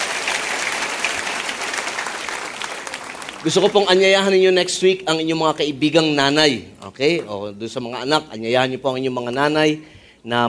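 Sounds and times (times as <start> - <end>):
applause for mothers at a Mother's Day church service: 0.0 - 4.3
speech: 3.4 - 10.4.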